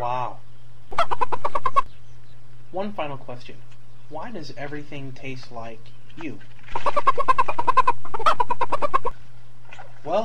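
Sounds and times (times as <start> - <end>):
faint steady low hum: 0.0 - 10.2
chicken clucking: 0.9 - 2.0, 6.2 - 9.2
speech: 2.8 - 8.9, 10.0 - 10.2.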